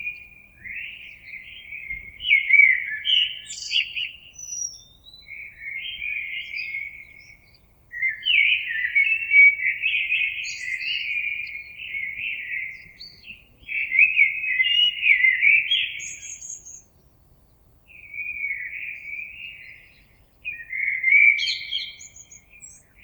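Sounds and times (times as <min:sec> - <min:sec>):
common blackbird singing: 0:00.0 - 0:23.0.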